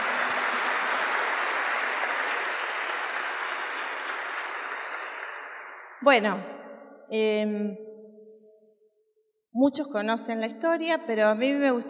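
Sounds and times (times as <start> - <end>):
audience applause: 0.0 - 6.0
speech: 6.0 - 7.9, 9.6 - 11.8.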